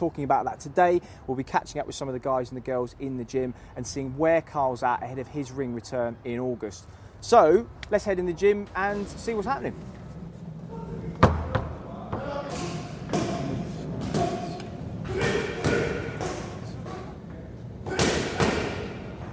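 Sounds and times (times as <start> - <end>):
speech: 0.0 - 10.0
boxing pads being hit during pad work in a boxing gym: 11.2 - 17.1, 17.8 - 19.3.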